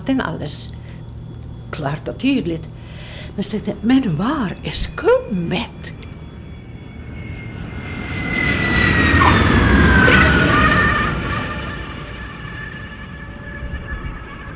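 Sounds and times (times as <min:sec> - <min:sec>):
speech: 0:00.0 - 0:00.8, 0:01.7 - 0:06.0
airplane landing on runway: 0:05.9 - 0:14.5.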